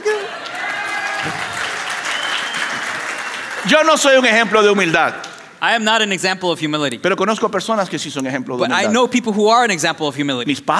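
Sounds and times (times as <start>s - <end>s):
audience applause: 0.0s - 5.4s
speech: 3.6s - 10.7s.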